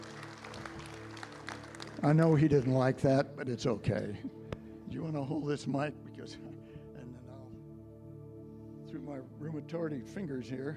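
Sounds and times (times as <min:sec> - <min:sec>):
audience applause: 0:00.0 - 0:02.7
speech: 0:02.0 - 0:06.7, 0:08.9 - 0:10.7.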